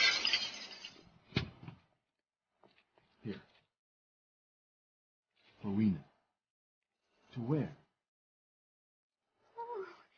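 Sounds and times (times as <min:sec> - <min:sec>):
glass shards tinkling: 0:00.0 - 0:01.0
glass broken with a chair: 0:00.0 - 0:01.2
speech: 0:03.2 - 0:03.5, 0:05.6 - 0:06.1, 0:07.4 - 0:07.8.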